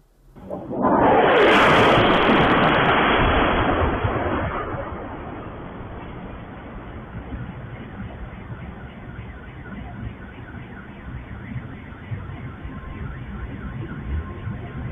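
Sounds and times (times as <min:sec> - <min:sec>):
aerial bomb explosion in city street: 0:00.4 - 0:08.8.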